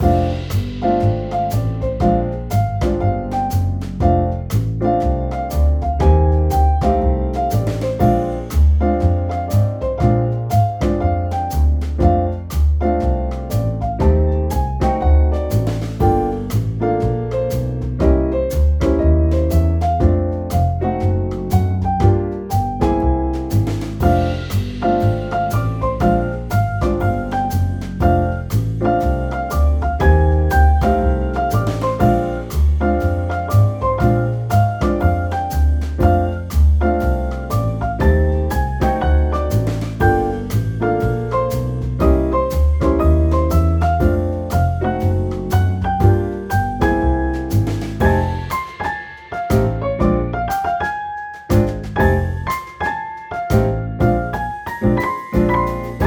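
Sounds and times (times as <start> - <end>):
music: 0.0 - 56.0.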